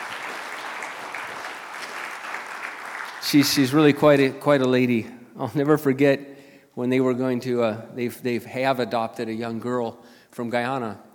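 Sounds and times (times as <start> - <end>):
audience applause: 0.0 - 4.2
speech: 3.2 - 11.1.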